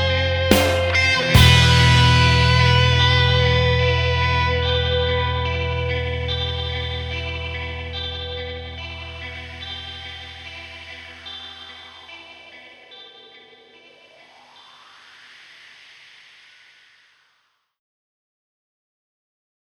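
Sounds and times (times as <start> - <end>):
Epiphone Les Paul electric guitar: 0.0 - 14.9.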